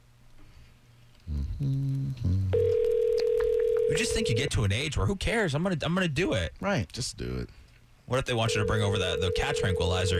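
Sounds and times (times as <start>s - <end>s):
speech: 1.6s - 2.5s, 3.9s - 10.1s
steady sustained phone ringing tone: 2.6s - 4.5s, 8.5s - 10.1s.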